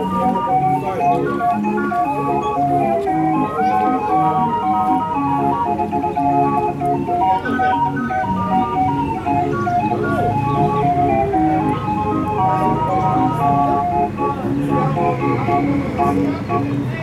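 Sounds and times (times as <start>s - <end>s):
hurdy-gurdy playing in a bird park: 0.0s - 16.9s
birds in a park: 5.8s - 12.3s.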